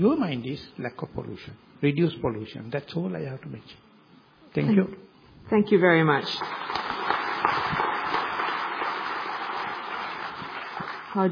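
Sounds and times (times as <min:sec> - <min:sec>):
speech: 0:00.0 - 0:03.9, 0:04.5 - 0:06.8, 0:11.2 - 0:11.3
audience applause: 0:06.4 - 0:11.3.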